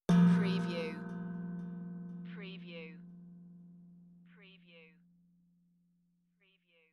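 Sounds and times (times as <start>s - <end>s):
meditative tongue drum tone: 0.0s - 5.2s.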